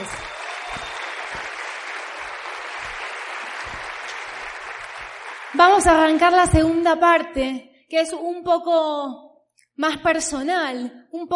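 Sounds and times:
audience applause: 0:00.0 - 0:06.5
speech: 0:05.6 - 0:09.2, 0:09.8 - 0:11.3.

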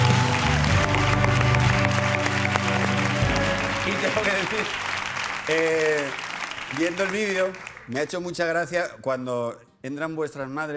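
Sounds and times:
audience applause: 0:00.0 - 0:08.0
speech: 0:05.5 - 0:10.7.

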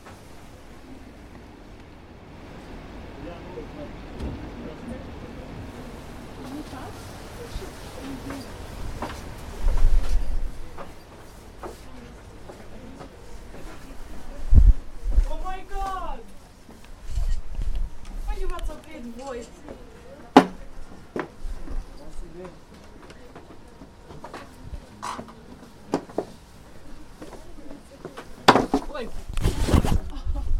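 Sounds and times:
crowd chatter in Prague: 0:00.0 - 0:30.5
footsteps: 0:06.3 - 0:30.5.

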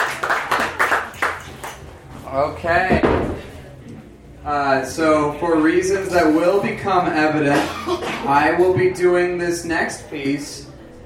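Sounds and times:
audience clapping: 0:00.0 - 0:01.9
speech: 0:02.4 - 0:03.4, 0:04.4 - 0:10.7.

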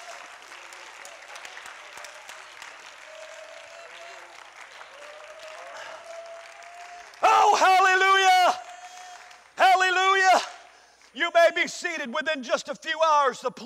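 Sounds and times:
church audience clapping hands: 0:00.0 - 0:11.2
speech: 0:11.6 - 0:13.6.

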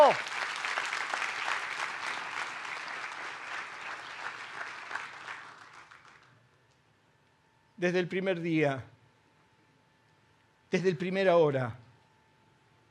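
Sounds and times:
audience applauding: 0:00.0 - 0:06.4
speech: 0:07.8 - 0:08.9, 0:10.7 - 0:11.8.

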